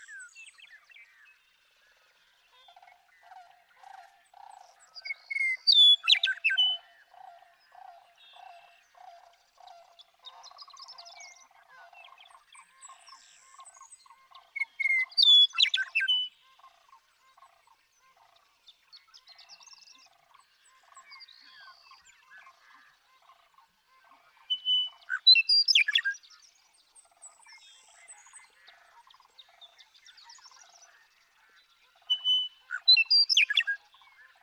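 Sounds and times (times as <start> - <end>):
other birds chirping: 0.0 - 34.4
Western meadowlark whistled gurgling song: 5.0 - 6.8, 24.5 - 26.2, 32.1 - 33.8.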